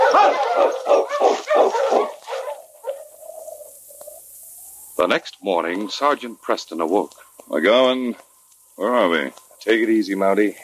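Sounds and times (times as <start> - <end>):
dog barking: 0.0 - 3.2
speech: 5.0 - 10.6.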